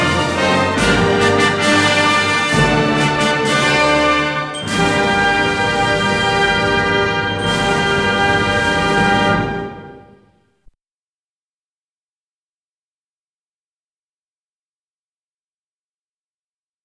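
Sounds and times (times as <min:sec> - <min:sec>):
instrumental national anthem: 0:00.0 - 0:10.2.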